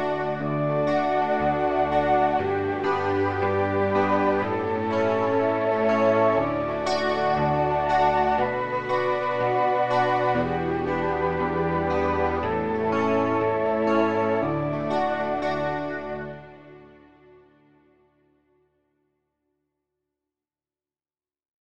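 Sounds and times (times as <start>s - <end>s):
backing track: 0.0s - 17.4s.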